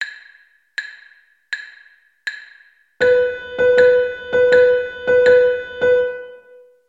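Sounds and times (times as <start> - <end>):
dotted eighth and sixteenth rhythm: 0.0 - 6.6.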